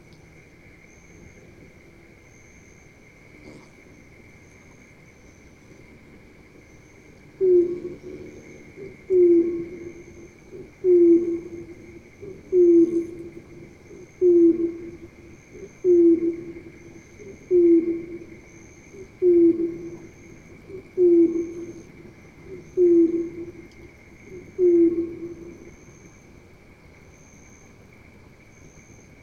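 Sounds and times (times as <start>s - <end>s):
heron, filtered: 7.2s - 25.9s.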